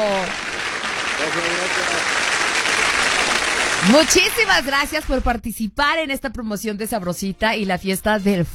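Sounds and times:
applause sound effect: 0:00.0 - 0:05.2
speech: 0:03.8 - 0:08.5.

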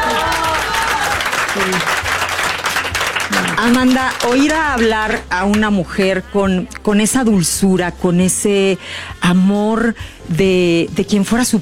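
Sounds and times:
audience applause: 0:00.0 - 0:05.2
speech: 0:01.6 - 0:02.0, 0:03.6 - 0:11.5.

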